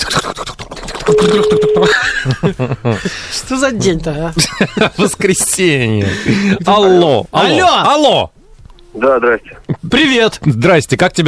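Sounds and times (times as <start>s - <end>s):
telephone ringing tone of a call being placed: 1.1s - 2.0s
speech: 1.1s - 8.4s, 9.0s - 11.2s.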